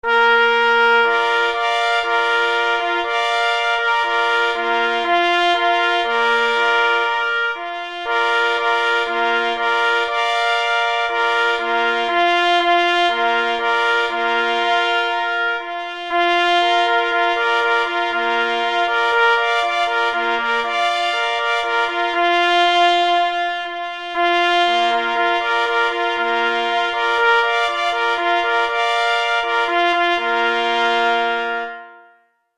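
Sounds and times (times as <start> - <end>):
three hunting horns playing: 0.0 - 32.3.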